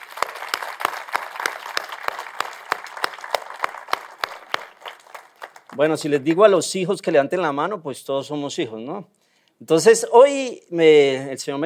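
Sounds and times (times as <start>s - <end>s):
audience applause for fathers: 0.0s - 5.8s
speech: 5.8s - 11.6s.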